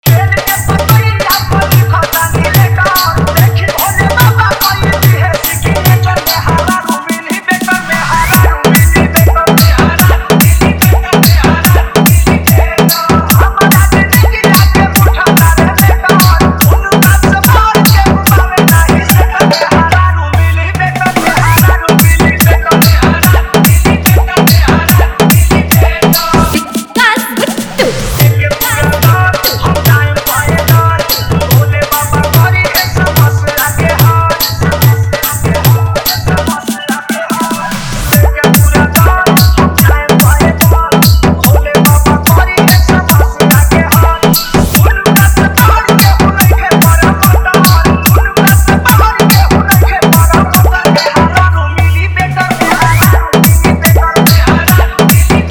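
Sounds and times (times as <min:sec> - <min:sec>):
Bhojpuri song: 0:00.0 - 0:55.4.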